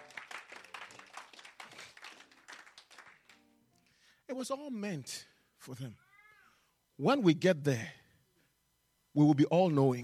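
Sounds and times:
audience clapping: 0.0s - 3.5s
speech: 4.3s - 6.0s, 7.0s - 8.0s, 9.2s - 10.0s.

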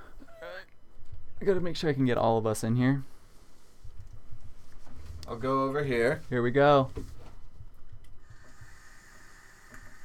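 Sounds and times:
speech: 1.4s - 3.1s, 5.3s - 7.2s
vape inhale: 8.2s - 10.0s.

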